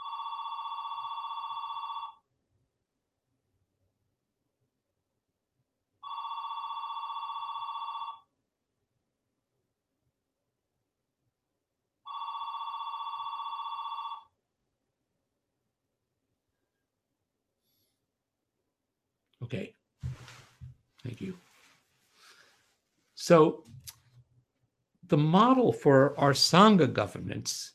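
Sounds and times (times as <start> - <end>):
telephone ringing: 0.0 - 2.3, 6.0 - 8.3, 12.0 - 14.4
speech: 19.4 - 19.8, 21.0 - 21.5, 23.2 - 23.7, 25.1 - 27.7.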